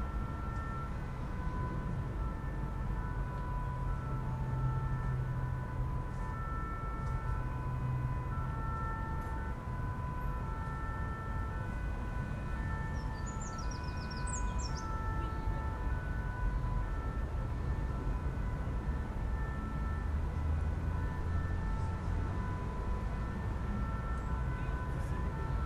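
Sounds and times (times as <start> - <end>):
siren in a park: 0.0 - 25.6.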